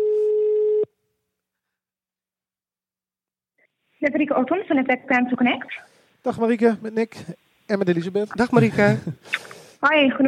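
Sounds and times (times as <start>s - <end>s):
telephone ringback tone on an outgoing call: 0.0s - 0.9s
speech: 4.0s - 10.2s
laughter: 8.4s - 9.2s.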